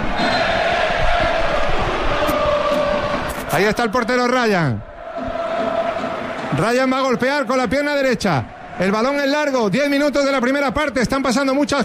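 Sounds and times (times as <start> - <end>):
Málaga football fans at La Rosaleda stadium chanting a player's name: 0.0 - 8.9
speech: 3.6 - 4.9, 6.6 - 11.8.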